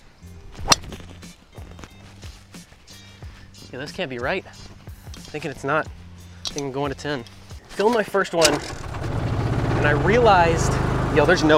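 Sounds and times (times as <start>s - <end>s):
golf club hitting a ball off the 10th hole on a golf course: 0.6s - 1.0s
speech: 3.7s - 4.7s, 5.3s - 6.0s, 6.6s - 8.8s, 9.8s - 11.5s.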